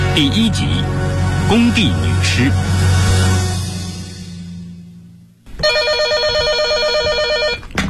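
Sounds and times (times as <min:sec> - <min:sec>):
speech: 0:00.2 - 0:02.7
low humming tone: 0:03.0 - 0:07.5
telephone ringing late at night: 0:05.5 - 0:07.8.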